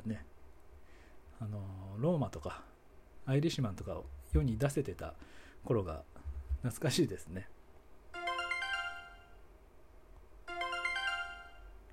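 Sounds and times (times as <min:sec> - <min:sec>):
speech: 0:00.0 - 0:00.3, 0:01.4 - 0:07.6
email notification chime: 0:08.2 - 0:09.4, 0:10.5 - 0:11.8.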